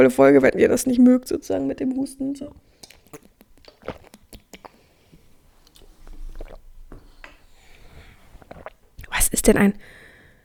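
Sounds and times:
speech: 0:00.0 - 0:03.3, 0:09.5 - 0:10.0
person drinking a beverage: 0:02.6 - 0:10.2.

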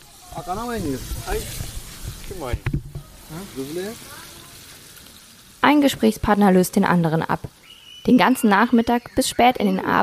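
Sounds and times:
meat sizzling in a pan: 0:00.0 - 0:10.0
speech: 0:00.3 - 0:01.7, 0:02.3 - 0:04.2, 0:05.6 - 0:10.0.

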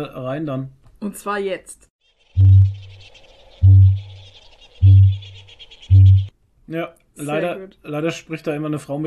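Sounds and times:
speech: 0:00.0 - 0:03.8, 0:06.7 - 0:09.0
kakapo booming call: 0:02.3 - 0:06.3.

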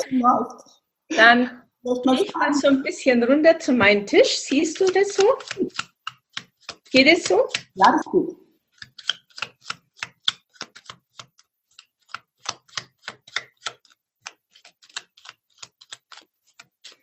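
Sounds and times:
speech: 0:00.0 - 0:05.9, 0:06.9 - 0:08.4
cards being shuffled by hand: 0:04.2 - 0:07.9, 0:08.7 - 0:17.0.

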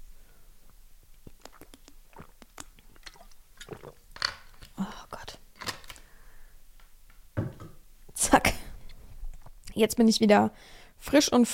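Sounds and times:
person drinking a sip of water: 0:00.6 - 0:05.4
speech: 0:09.8 - 0:11.5.

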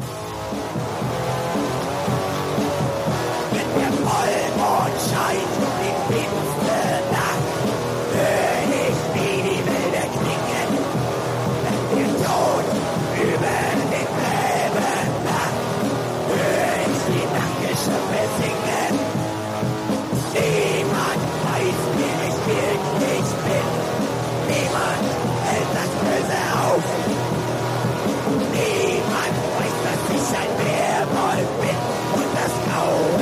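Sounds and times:
black metal distorted guitars: 0:00.0 - 0:33.2
pounding drums: 0:00.1 - 0:33.2.

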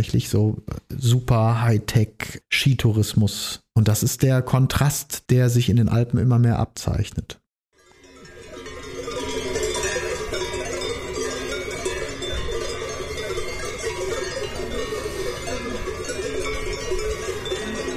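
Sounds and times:
speech: 0:00.0 - 0:07.4
cowbells clanging: 0:07.8 - 0:17.9.

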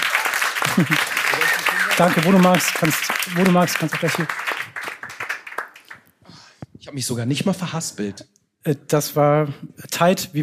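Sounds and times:
applause: 0:00.0 - 0:06.2
laughter: 0:00.3 - 0:02.8
speech: 0:00.8 - 0:01.2, 0:02.0 - 0:04.4, 0:06.9 - 0:10.4.

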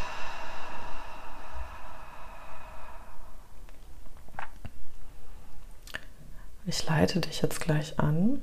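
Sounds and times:
slow breathing in through the nose and out through the mouth during a guided breathing exercise: 0:00.0 - 0:06.6
speech: 0:06.7 - 0:08.4.

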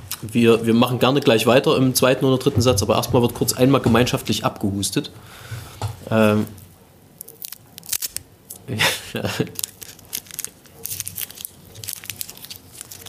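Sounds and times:
speech: 0:00.2 - 0:06.6, 0:08.7 - 0:09.7
candy wrapper slowly unwrapped: 0:07.2 - 0:08.7, 0:09.3 - 0:13.0.

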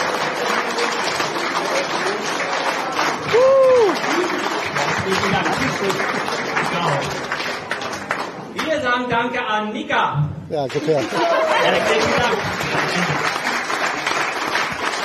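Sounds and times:
audience applause: 0:00.0 - 0:08.7, 0:10.6 - 0:15.0
tonal whoop or whistle: 0:03.3 - 0:04.0
speech: 0:09.0 - 0:13.3
laughter: 0:11.0 - 0:14.0.

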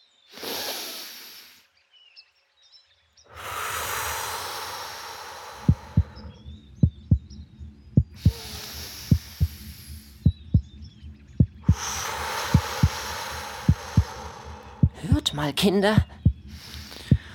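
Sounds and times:
breathing-like hiss: 0:00.1 - 0:01.7, 0:03.3 - 0:06.5, 0:08.1 - 0:10.4, 0:11.6 - 0:15.0, 0:16.4 - 0:17.3
heartbeat heard through a stethoscope: 0:05.4 - 0:17.3
speech: 0:15.4 - 0:16.1.

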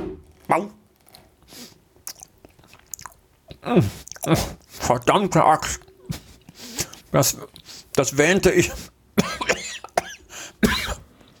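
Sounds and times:
speech: 0:00.5 - 0:00.8, 0:03.6 - 0:05.8, 0:07.1 - 0:08.9
biting and chewing a spritz cookie: 0:00.9 - 0:08.0.

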